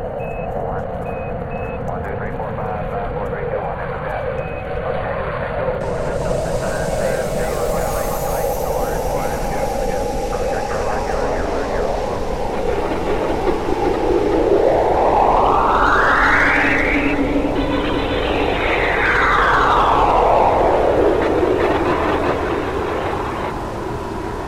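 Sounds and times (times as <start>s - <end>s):
low rumble of space flight launch: 0.0s - 24.4s
whining tone climbing and sliding in pitch: 5.8s - 24.4s.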